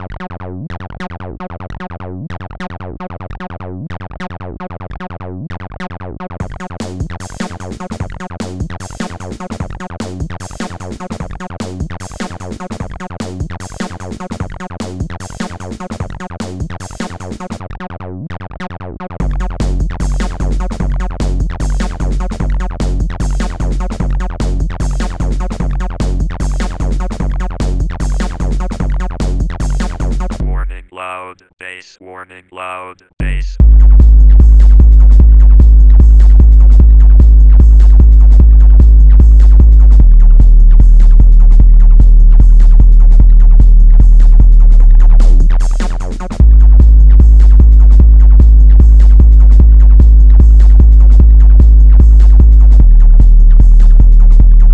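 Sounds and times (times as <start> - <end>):
loud bass: 6.4 - 10.6, 19.2 - 30.9, 33.2 - 54.7.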